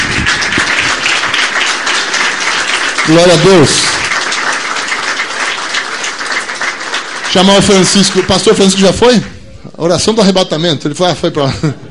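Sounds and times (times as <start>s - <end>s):
audience applauding: 0.0s - 9.3s
speech: 3.1s - 4.1s, 7.3s - 11.8s.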